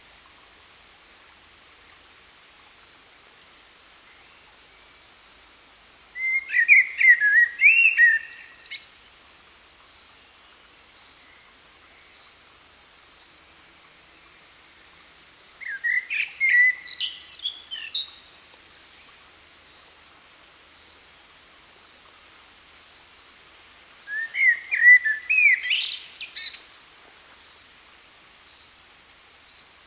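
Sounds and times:
common blackbird whistling song: 0:06.2 - 0:08.9, 0:15.6 - 0:18.2, 0:24.1 - 0:26.7.

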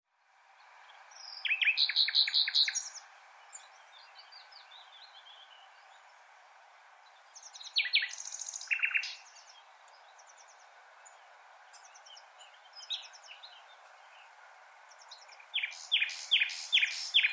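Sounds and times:
common nightingale song: 0:00.1 - 0:17.3.

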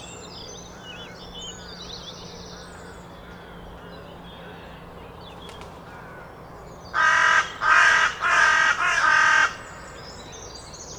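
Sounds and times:
carrion crow cawing: 0:07.0 - 0:09.9.

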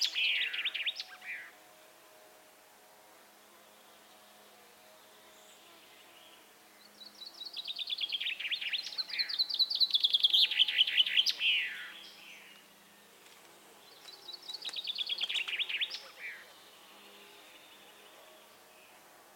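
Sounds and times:
common chaffinch singing: 0:00.0 - 0:01.6, 0:05.2 - 0:12.8, 0:13.7 - 0:19.0.

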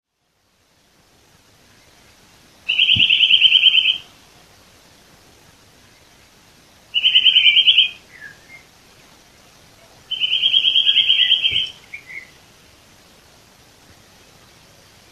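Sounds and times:
Eurasian nuthatch Sitta europaea giving rapid piping trills: 0:02.7 - 0:04.1, 0:06.9 - 0:08.7, 0:10.1 - 0:12.4.

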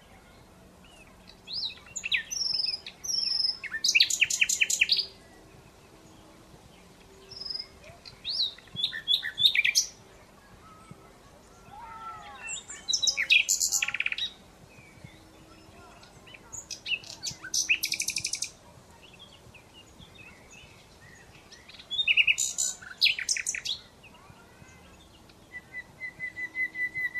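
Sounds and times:
Common Nightingale song: 0:00.9 - 0:05.3, 0:06.9 - 0:10.0, 0:12.2 - 0:24.2, 0:25.2 - 0:27.1.

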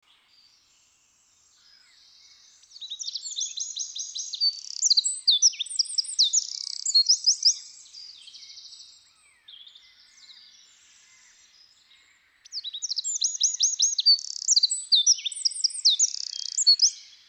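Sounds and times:
Eurasian wren Troglodytes troglodytes singing: 0:02.8 - 0:08.8, 0:12.6 - 0:17.1.

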